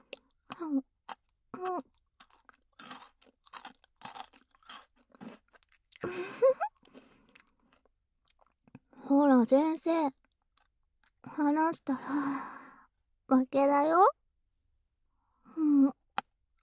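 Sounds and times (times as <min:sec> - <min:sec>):
speech: 0:00.6 - 0:00.9, 0:01.6 - 0:01.9, 0:09.4 - 0:10.2, 0:11.4 - 0:12.5, 0:13.3 - 0:14.2
food being crunched and chewed: 0:01.1 - 0:06.0, 0:06.8 - 0:08.7.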